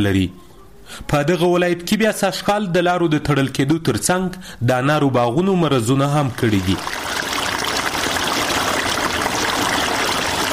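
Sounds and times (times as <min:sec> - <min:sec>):
speech: 0:00.0 - 0:07.0
water flowing while irrigating a pomegranate orchard in Spitkhar, Tarinkot, Uruzgan: 0:06.4 - 0:10.5.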